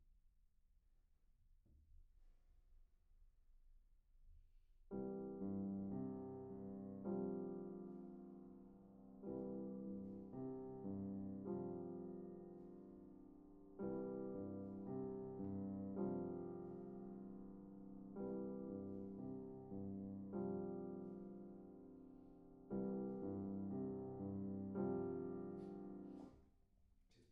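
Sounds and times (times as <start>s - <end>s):
piano: 4.9s - 26.6s.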